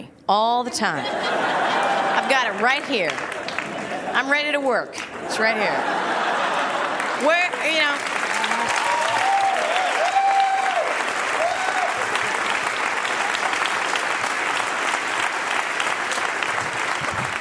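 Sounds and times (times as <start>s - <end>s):
speech: 0.3s - 3.3s, 4.1s - 6.0s, 7.2s - 8.1s
laughter: 1.0s - 4.4s, 5.2s - 7.7s
audience applauding: 1.4s - 4.3s, 5.0s - 17.3s.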